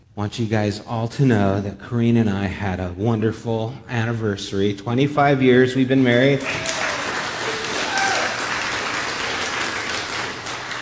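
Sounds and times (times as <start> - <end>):
speech: 0.2 - 6.8
audience applause: 6.3 - 10.8.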